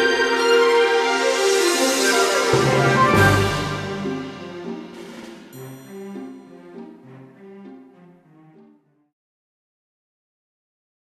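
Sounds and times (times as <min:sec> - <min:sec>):
orchestra: 0:00.0 - 0:08.8.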